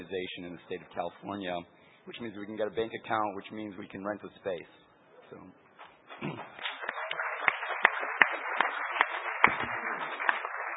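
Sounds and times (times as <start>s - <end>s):
speech: 0.0s - 5.6s, 6.2s - 6.6s
crowd applause: 6.3s - 10.7s.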